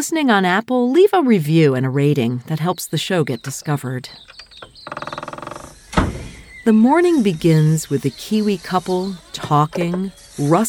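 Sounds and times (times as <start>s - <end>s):
speech: 0.0s - 5.2s, 6.6s - 10.6s
door banging shut: 4.5s - 6.6s.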